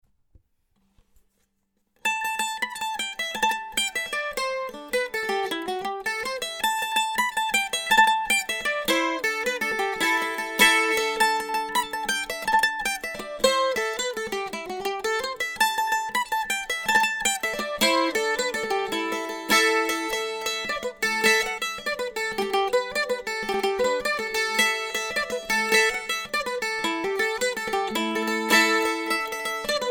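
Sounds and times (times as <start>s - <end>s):
mandolin: 2.0s - 29.8s.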